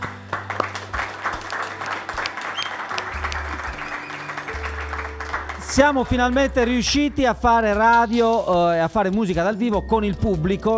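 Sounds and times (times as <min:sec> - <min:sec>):
audience applause: 0:00.0 - 0:06.6
speech: 0:05.8 - 0:10.7.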